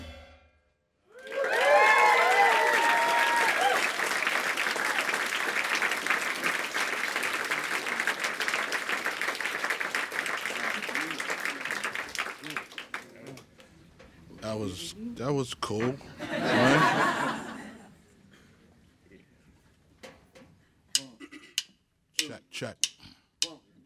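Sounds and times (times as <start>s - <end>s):
crowd whooping and cheering: 1.1s - 5.2s
audience applause: 1.1s - 13.4s
speech: 15.7s - 16.2s, 22.6s - 22.9s
laughter: 16.0s - 18.0s.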